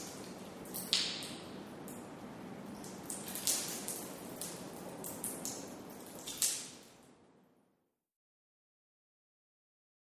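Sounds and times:
water dripping indoors: 0.0 - 7.1.

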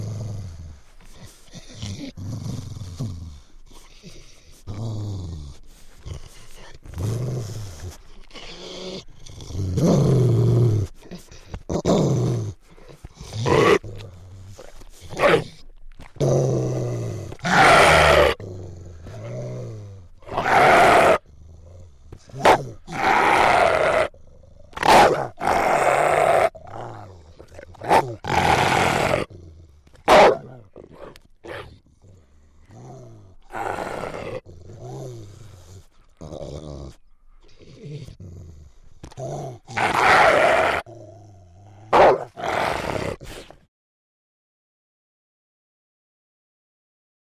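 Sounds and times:
Rottweiler snarling viciously: 4.1 - 15.6, 17.2 - 37.0, 37.8 - 41.1, 41.7 - 43.5.

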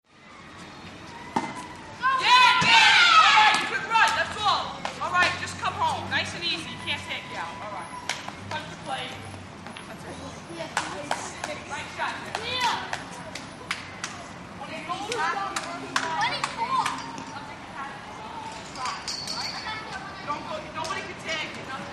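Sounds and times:
boys playing stick ball: 0.6 - 21.9.

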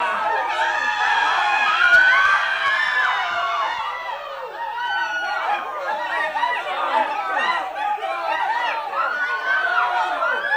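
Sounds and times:
crowd walla screaming in panic: 0.0 - 10.5
laughter: 0.0 - 10.5.

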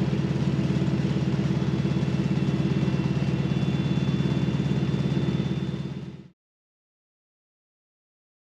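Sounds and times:
Harvard propeller plane interior noise: 0.0 - 6.3.

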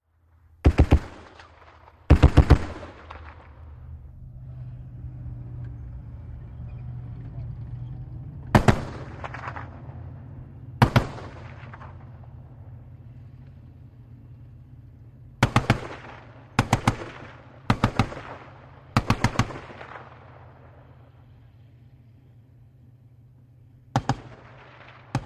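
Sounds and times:
distant 50 caliber machine gun shots: 0.6 - 3.8, 8.5 - 10.0, 10.8 - 12.2, 15.4 - 20.7, 23.9 - 25.2
armoured personnel carrier driving outdoors: 2.9 - 25.2.

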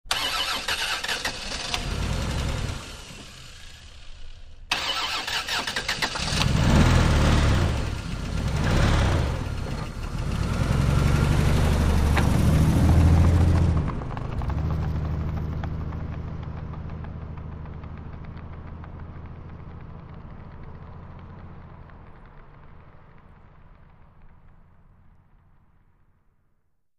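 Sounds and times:
car muffler dragging: 0.1 - 25.7
car starting and driving away: 0.1 - 26.2.

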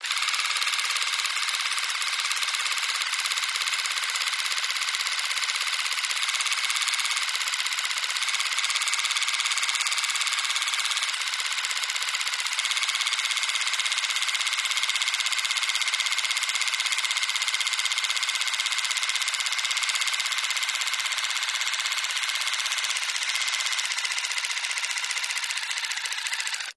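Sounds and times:
small electric toothbrush motor: 0.0 - 26.7.

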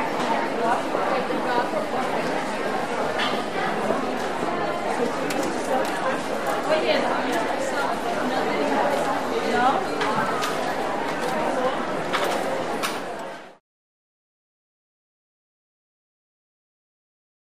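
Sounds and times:
airport interior ambience: 0.0 - 13.6.

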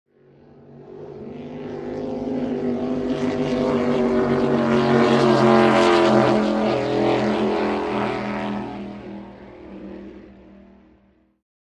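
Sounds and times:
offshore power boat passing by fast: 0.1 - 11.4.

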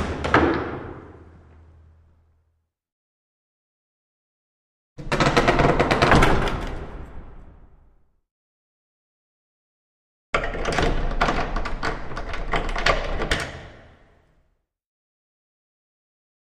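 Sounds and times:
large wooden front door opening and closing: 0.0 - 2.0, 5.0 - 7.7, 10.4 - 14.3.

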